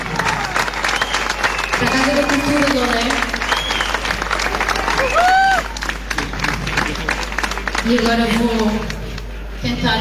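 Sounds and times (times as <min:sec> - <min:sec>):
people cheering: 0:00.0 - 0:08.9
audience applause: 0:00.0 - 0:09.3
whistle: 0:00.9 - 0:02.7, 0:03.4 - 0:04.0
speech: 0:01.8 - 0:03.4, 0:07.9 - 0:08.9, 0:09.6 - 0:09.9.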